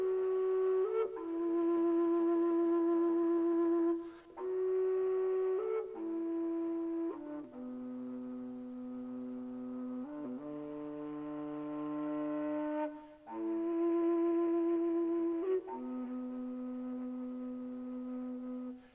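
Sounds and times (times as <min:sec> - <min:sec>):
carved fujara flute: 0:00.0 - 0:18.9.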